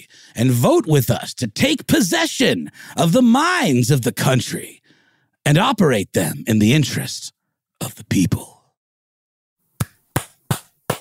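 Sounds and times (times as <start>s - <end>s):
speech: 0.0s - 4.8s, 5.4s - 8.6s
hand clapping: 9.8s - 10.9s.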